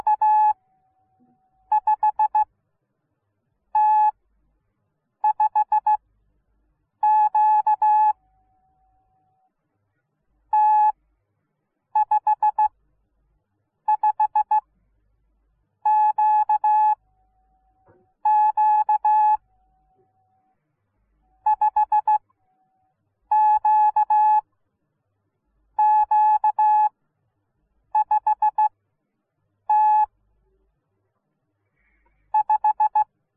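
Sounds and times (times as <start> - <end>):
morse code beeps: 0.0 - 0.6, 1.2 - 2.5, 3.8 - 4.2, 5.2 - 6.0, 7.0 - 8.2, 10.6 - 11.0, 12.0 - 12.7, 13.9 - 14.6, 15.9 - 17.0, 18.2 - 19.4, 21.4 - 22.3, 23.3 - 24.4, 25.8 - 26.9, 28.0 - 28.7, 29.7 - 30.1, 32.3 - 33.0.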